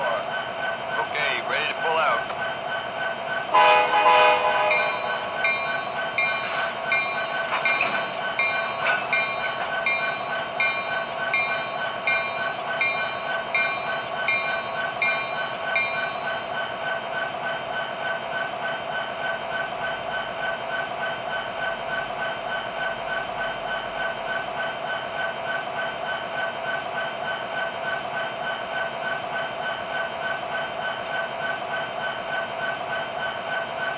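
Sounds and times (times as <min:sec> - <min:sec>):
SD70ACE and electric trains: 0:00.0 - 0:33.9.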